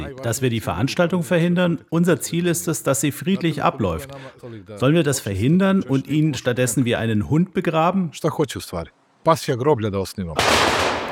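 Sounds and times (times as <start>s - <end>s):
speech: 0.0s - 11.0s
ceremonial gun salute shots at funeral: 10.4s - 11.1s.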